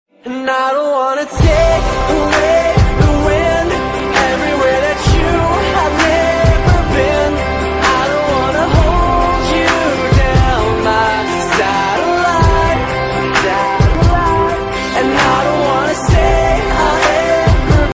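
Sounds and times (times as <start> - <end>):
electro music: 1.2 - 17.9.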